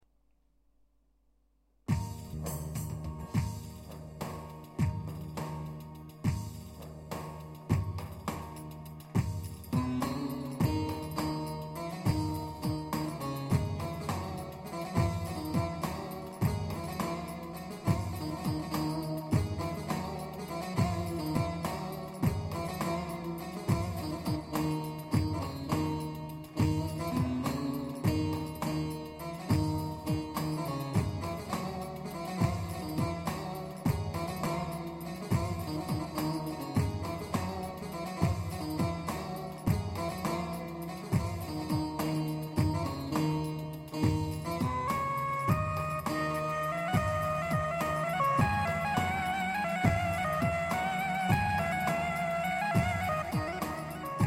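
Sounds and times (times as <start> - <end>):
PA-500 five-eight rhythm pattern: 1.9 - 54.2
violin playing in five-eight rhythm on a PA-500: 44.7 - 54.2.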